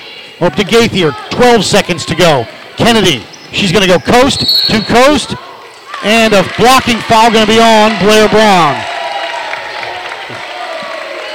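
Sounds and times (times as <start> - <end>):
speech: 0.4 - 8.9
crowd cheering at basketball game: 4.6 - 11.3.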